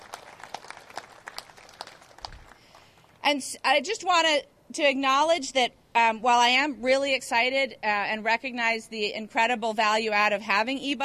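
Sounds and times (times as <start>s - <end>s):
round of applause: 0.0s - 3.1s
speech: 3.3s - 11.0s.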